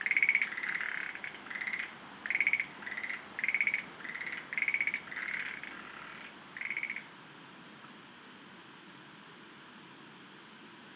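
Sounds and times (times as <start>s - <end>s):
Schlegel's green tree frog pulsed trill: 0.0s - 7.0s
background hiss: 0.0s - 8.4s.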